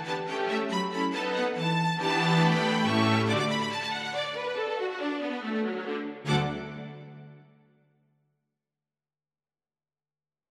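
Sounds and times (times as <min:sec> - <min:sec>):
strings playing a tune: 0:00.0 - 0:07.6.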